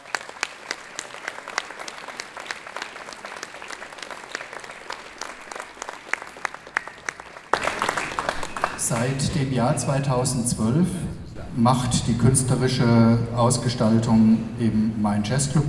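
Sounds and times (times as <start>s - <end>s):
audience applause: 0.0s - 9.6s
speech: 9.0s - 15.6s.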